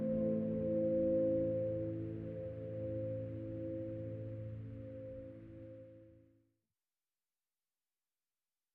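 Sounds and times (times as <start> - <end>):
piano: 0.0 - 6.1.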